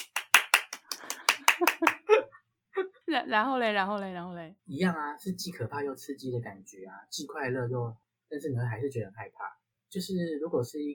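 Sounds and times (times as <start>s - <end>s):
applause: 0.0s - 2.1s
speech: 3.1s - 10.9s.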